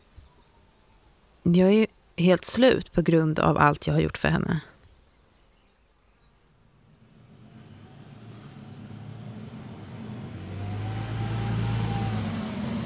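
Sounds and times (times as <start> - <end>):
speech: 1.4 - 4.7
bus arriving: 6.6 - 12.8.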